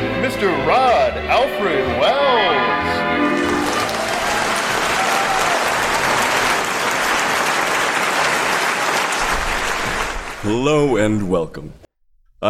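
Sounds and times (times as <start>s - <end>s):
speech: 0.3s - 3.5s, 10.4s - 11.8s
audience applause for a live radio theater troupe and its host: 3.3s - 10.8s.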